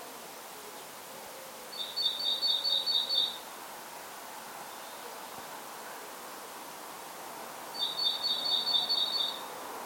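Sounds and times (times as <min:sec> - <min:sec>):
great tit calling: 0:01.8 - 0:03.4, 0:07.8 - 0:09.5.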